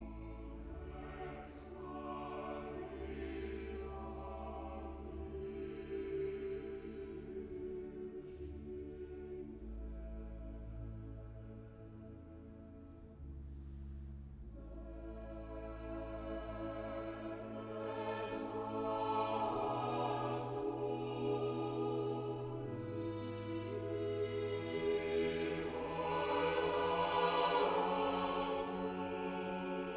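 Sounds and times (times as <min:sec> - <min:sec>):
choir singing: 0:00.0 - 0:11.9, 0:14.6 - 0:29.9.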